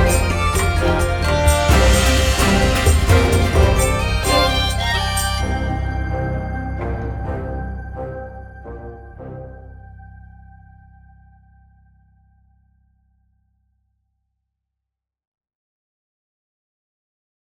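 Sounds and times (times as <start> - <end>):
tribal dance music: 0.0 - 7.9.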